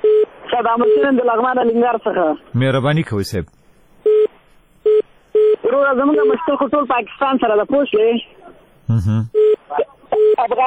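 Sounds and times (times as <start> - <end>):
telephone beeps as a radio call-in caller is cut off: 0.0 - 1.9, 4.0 - 6.5, 9.3 - 10.5
speech: 0.6 - 3.6, 5.7 - 10.6.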